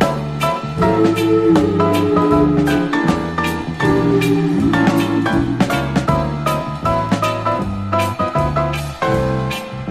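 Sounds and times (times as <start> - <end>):
piano: 0.0 - 9.8
voices: 0.8 - 6.1.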